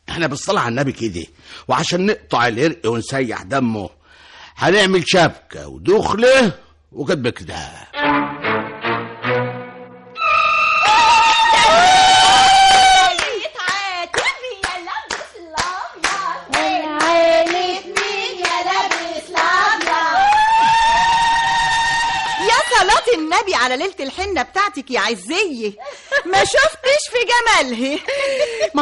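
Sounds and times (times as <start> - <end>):
speech: 0.2 - 4.0, 4.6 - 8.3, 22.9 - 28.8
women ululating in a zaghrouta at a henna night celebration: 10.2 - 13.4, 20.1 - 23.3
rhythmic hand clapping: 13.0 - 20.7.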